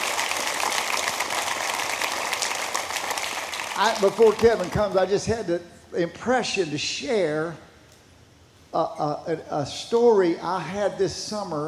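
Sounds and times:
crowd of people clapping their hands: 0.0s - 5.1s
speech: 3.8s - 7.7s, 8.7s - 11.6s.

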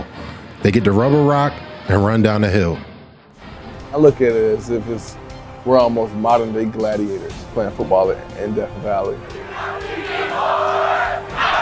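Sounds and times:
speech: 0.6s - 2.9s, 3.9s - 10.6s
huge stadium crowd of fans screaming and roaring: 9.4s - 11.6s.

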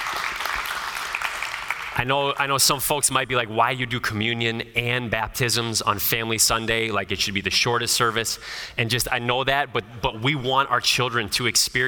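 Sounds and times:
audience clapping: 0.0s - 2.1s
speech: 2.0s - 11.8s.

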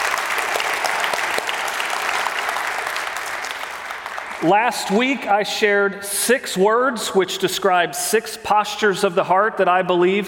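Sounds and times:
church congregation applause welcoming a new family: 0.0s - 5.3s
speech: 4.4s - 10.2s.

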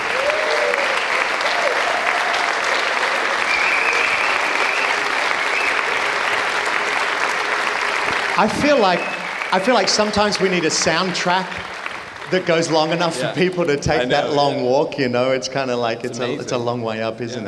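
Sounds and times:
audience applause welcoming a guest speaker at a church service: 0.0s - 14.6s
speech: 8.4s - 11.7s, 12.3s - 17.4s.

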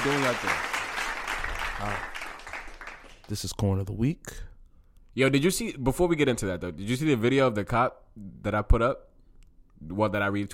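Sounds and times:
speech: 0.0s - 0.8s, 1.8s - 2.1s, 3.3s - 4.5s, 5.2s - 9.1s, 9.8s - 10.5s
inserted crowd applause sound effect: 0.0s - 3.3s.

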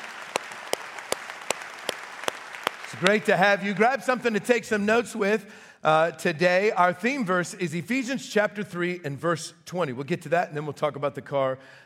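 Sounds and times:
church congregation clapping in a slow even beat: 0.0s - 4.6s
speech: 2.9s - 11.8s.

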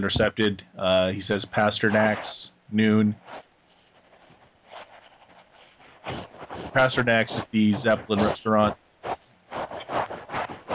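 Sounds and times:
speech: 0.0s - 3.4s, 6.1s - 9.2s
scraping as someone stands: 1.8s - 2.4s, 3.2s - 10.7s.

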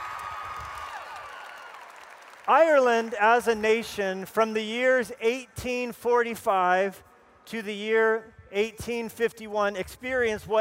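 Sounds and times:
audience applause welcoming two guests from Ireland: 0.0s - 3.2s
speech: 2.5s - 10.5s.

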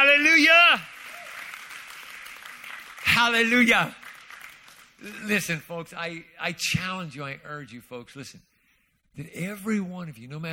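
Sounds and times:
audience clapping hands: 0.0s - 5.5s
speech: 3.2s - 4.0s, 5.0s - 8.5s, 9.2s - 10.5s.

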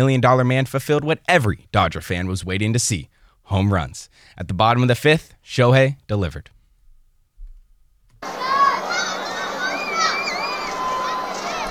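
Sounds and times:
speech: 0.0s - 6.6s
crowd cheering and shouting on a beachfront: 8.2s - 11.6s.

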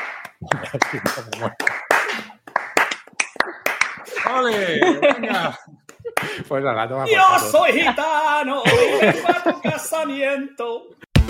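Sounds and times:
hand clapping: 0.0s - 6.4s
speech: 0.4s - 2.3s, 4.3s - 11.2s
laughter: 0.4s - 2.4s, 4.0s - 6.5s, 7.1s - 10.2s.

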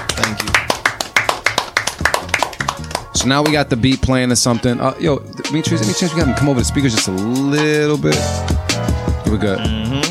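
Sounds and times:
hands clapping: 0.0s - 3.8s
speech: 3.2s - 8.7s, 9.3s - 10.0s.

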